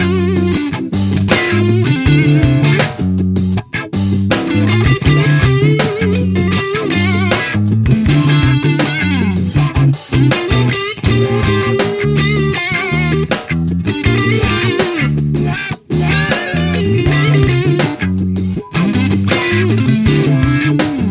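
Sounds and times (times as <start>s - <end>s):
wah funk music: 0.0s - 21.0s.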